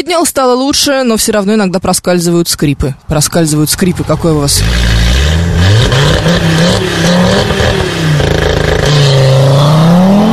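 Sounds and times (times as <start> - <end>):
speech: 0.0 - 8.0
old Audi TT RS engine growling and revving: 3.6 - 10.3.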